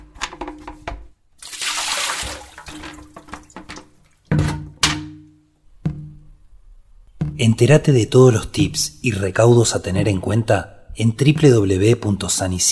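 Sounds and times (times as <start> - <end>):
hollow thunks and clatters: 0.0 - 1.2, 2.7 - 6.4, 7.1 - 7.5
water pouring out of an overturned container: 1.4 - 3.2
speech: 7.4 - 12.7.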